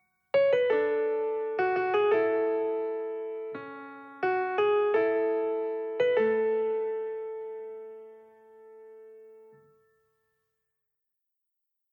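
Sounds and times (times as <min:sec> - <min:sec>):
piano piece: 0:00.3 - 0:10.0.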